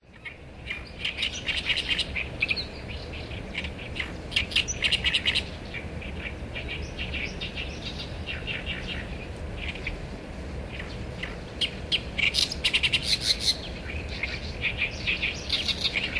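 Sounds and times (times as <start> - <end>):
great reed warbler singing: 0.0 - 16.1.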